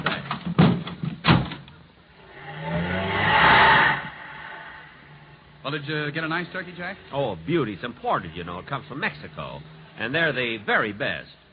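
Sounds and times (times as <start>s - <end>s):
car engine driving off: 2.1s - 10.0s
speech: 5.7s - 11.4s.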